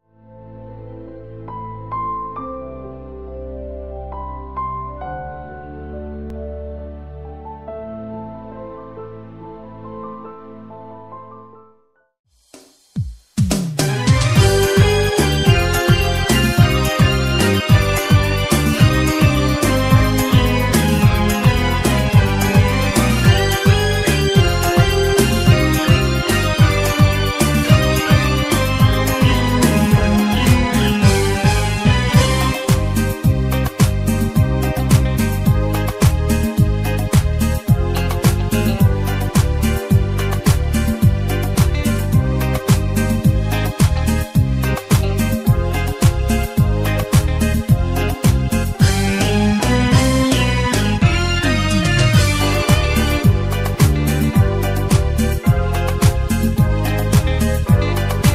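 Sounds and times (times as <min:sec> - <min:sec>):
karaoke singing: 0:13.8 - 0:58.3.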